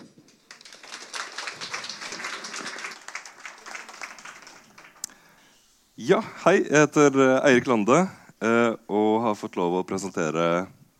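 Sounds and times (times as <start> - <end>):
audience applause: 0.0 - 5.4
speech: 6.0 - 10.8.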